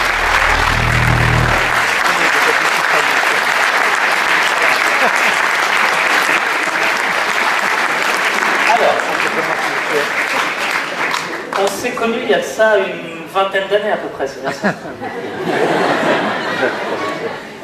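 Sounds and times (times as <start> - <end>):
audience applause: 0.0 - 11.6
speech: 12.0 - 16.0, 16.6 - 17.5
laughter: 14.4 - 17.6.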